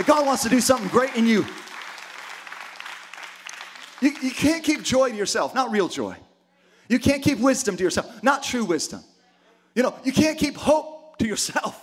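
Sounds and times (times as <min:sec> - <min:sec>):
speech: 0:00.0 - 0:01.7, 0:04.0 - 0:06.3, 0:06.9 - 0:09.1, 0:09.8 - 0:11.8
audience clapping: 0:00.0 - 0:04.9.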